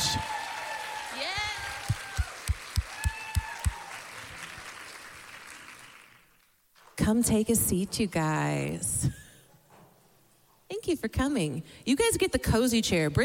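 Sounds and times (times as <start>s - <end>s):
audience cheering and applauding: 0.0s - 6.4s
speech: 7.1s - 9.2s, 10.9s - 13.2s.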